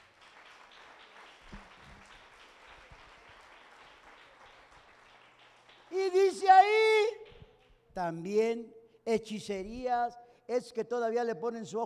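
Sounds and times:
audience applause: 0.0s - 7.4s
speech: 8.0s - 11.8s.

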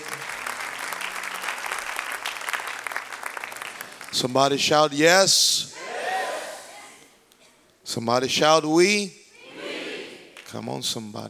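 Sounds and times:
audience clapping hands: 0.0s - 4.6s
speech: 4.1s - 5.7s, 8.0s - 9.2s, 10.5s - 11.2s.

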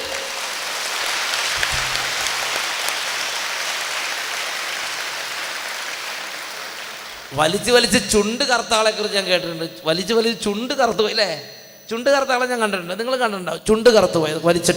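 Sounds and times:
audience clapping: 0.0s - 8.1s
speech: 7.3s - 14.7s.

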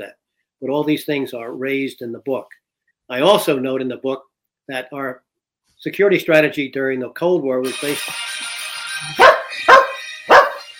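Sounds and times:
speech: 0.0s - 5.2s, 5.8s - 9.4s
phone ringtone: 7.7s - 10.7s.

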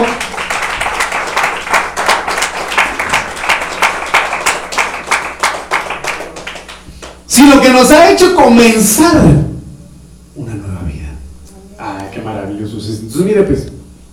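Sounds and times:
audience clapping: 0.0s - 7.3s
speech: 7.4s - 9.5s, 12.6s - 13.7s.

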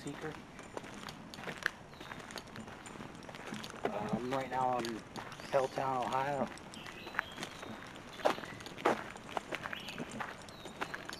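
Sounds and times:
speech: 0.0s - 0.5s, 4.0s - 6.6s
footsteps scuffing along a back trail in Helltown, Ohio: 0.0s - 11.1s.

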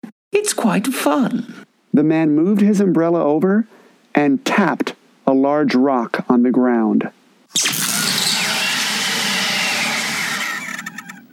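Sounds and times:
speech: 0.3s - 7.8s
teleport flash: 7.5s - 11.0s
lingering electric buzz: 7.5s - 11.2s.

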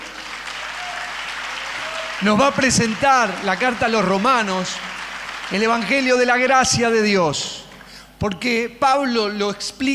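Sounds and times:
audience applause: 0.0s - 6.6s
speech: 2.2s - 4.9s, 5.5s - 7.6s, 8.2s - 9.9s.

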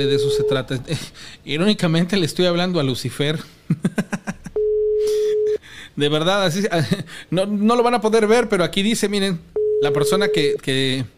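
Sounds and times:
telephone line tone while placing call: 0.0s - 0.6s, 4.6s - 5.6s, 9.6s - 10.6s
speech: 0.0s - 3.9s, 6.0s - 11.1s
rhythmic laughter: 3.7s - 4.6s.

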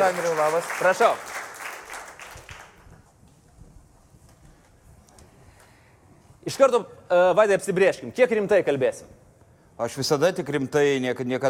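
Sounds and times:
speech: 0.0s - 1.4s, 6.5s - 9.2s, 9.8s - 11.4s
applause greeting a basketball commentator: 0.0s - 3.1s.

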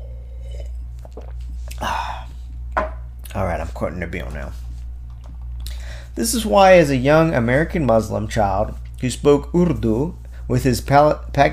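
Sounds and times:
slurping sip of wine: 0.0s - 2.4s
steady low hum: 0.0s - 11.5s
speech: 3.3s - 4.6s, 6.2s - 11.5s.

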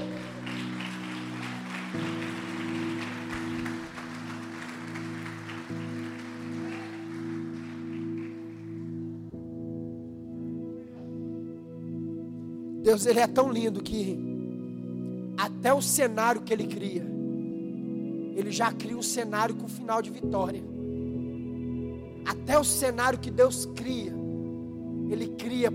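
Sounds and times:
audience applauding: 0.0s - 9.0s
held keyboard chords: 0.0s - 25.7s
speech: 12.9s - 14.3s, 15.6s - 17.1s, 18.4s - 20.7s, 22.5s - 24.2s, 25.1s - 25.7s.

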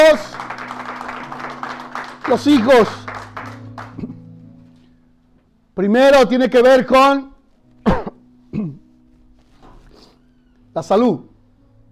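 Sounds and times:
audience clapping: 0.0s - 4.2s
speech: 2.3s - 3.0s, 5.8s - 8.0s, 10.8s - 11.3s.

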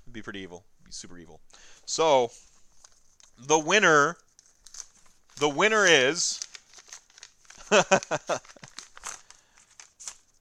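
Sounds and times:
speech: 0.2s - 2.5s, 3.4s - 4.2s, 5.4s - 6.5s, 7.7s - 8.7s
full sheet of paper crinkling and rustling: 2.3s - 10.3s.

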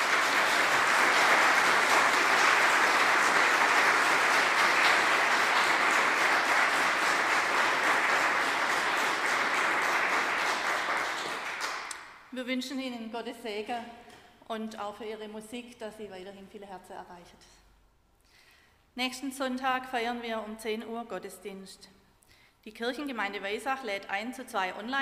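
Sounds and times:
audience applause: 0.0s - 12.1s
speech: 12.4s - 17.6s, 19.0s - 22.0s, 22.6s - 24.9s.

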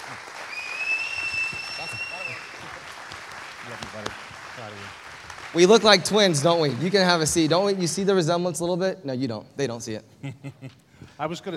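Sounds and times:
church congregation applauding a visiting pastor: 0.0s - 8.7s
speech: 5.5s - 11.5s.

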